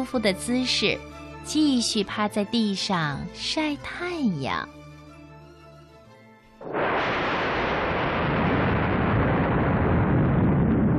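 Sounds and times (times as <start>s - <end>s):
speech: 0.0s - 4.8s
loud rumbling thunderclap: 6.6s - 10.9s.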